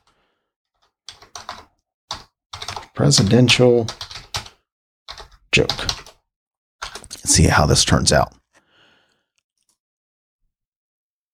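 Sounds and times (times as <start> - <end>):
typing a web search on a computer keyboard: 0.8 - 6.2, 6.8 - 7.3
speech: 3.0 - 4.0, 5.6 - 6.0, 7.3 - 8.4.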